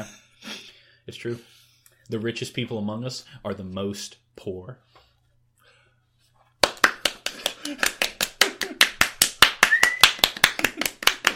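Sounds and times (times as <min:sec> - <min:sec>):
speech: 0:01.1 - 0:05.0
one person clapping in staccato burst: 0:06.6 - 0:11.3.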